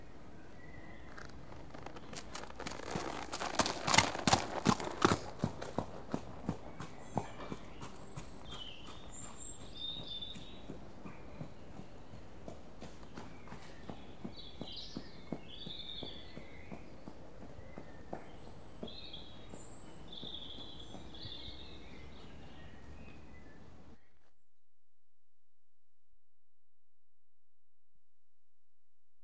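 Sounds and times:
one unshod horse trotting: 0.5 - 22.4.

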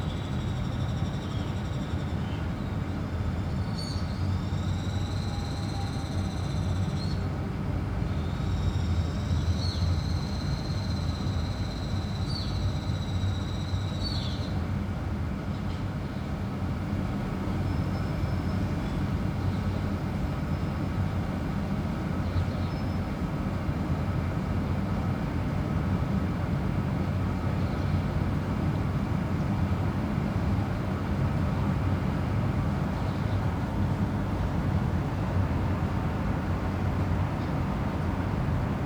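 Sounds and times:
early morning city back alley ambience in Barcelona Spain: 0.0 - 38.8.

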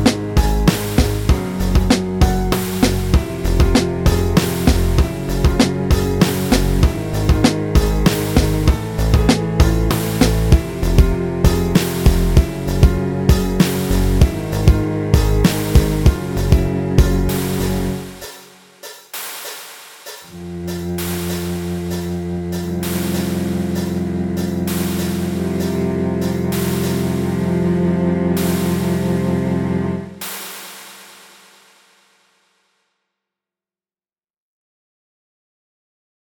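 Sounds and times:
chord progression: 0.0 - 18.5, 20.3 - 30.4.

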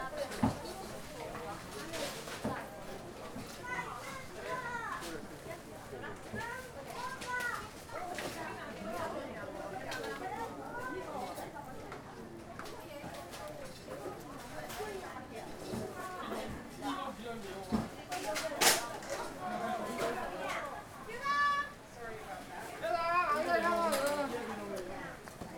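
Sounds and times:
lively crowd voices in Mandarin at a Chinatown supermarket checkout: 0.0 - 25.5
shopping cart moving: 23.1 - 24.8.

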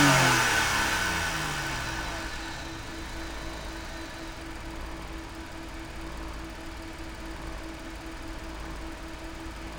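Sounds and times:
Alfa Romeo 159 SW engine starting, idling, revving and shutting down, onboard: 0.1 - 5.3.

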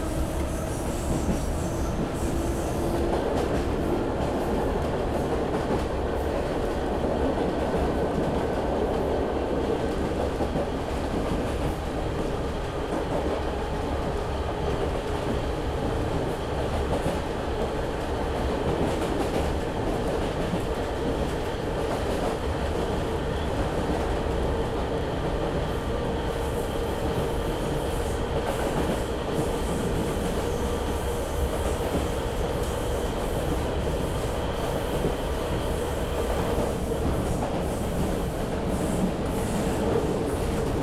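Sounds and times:
S-Bahn railway journey in Germany: 0.0 - 40.8.

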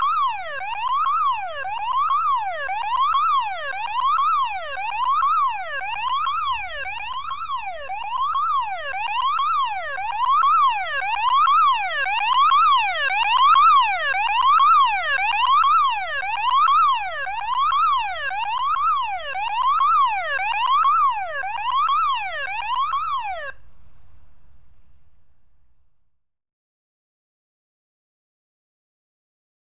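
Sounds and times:
urgent electronic alarm: 0.0 - 25.4.

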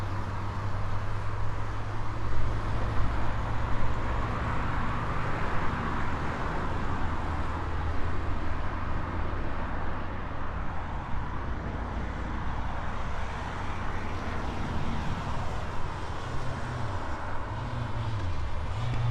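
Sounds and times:
city motorway traffic at a traffic circle in Spain: 0.0 - 19.0.

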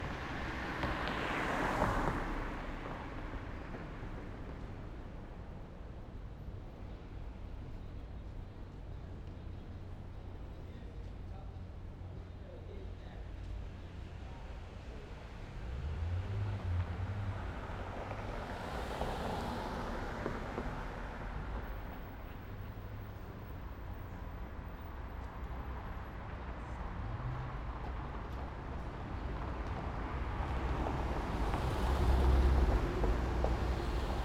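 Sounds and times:
city cars passing: 0.0 - 5.2, 13.6 - 34.2
pedestrians in a city: 0.0 - 34.2.

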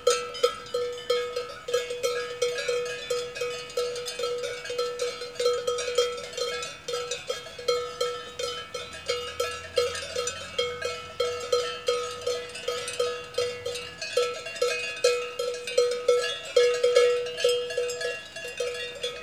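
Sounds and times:
large cowbells in Switzerland: 0.0 - 19.2.

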